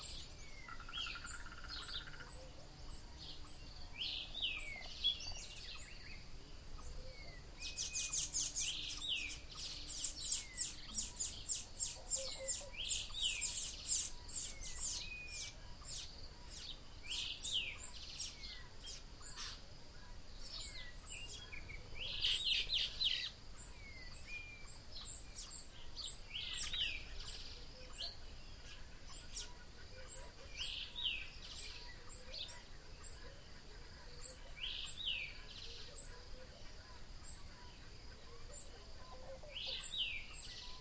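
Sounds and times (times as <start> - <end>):
birds: 0.0 - 40.7.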